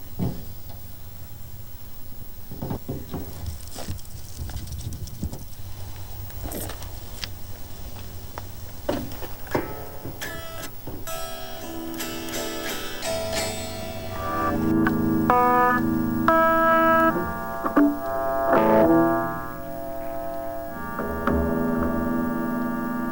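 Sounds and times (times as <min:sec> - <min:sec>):
guitar drag: 0:09.1 - 0:23.1.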